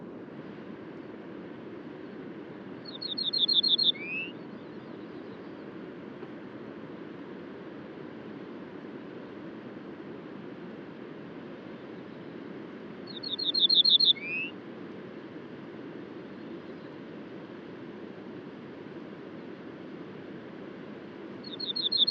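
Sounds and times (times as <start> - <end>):
bird trill at daybreak at col du Granon in the Hautes Alpes: 2.8 - 4.8, 13.1 - 14.6, 21.4 - 22.0.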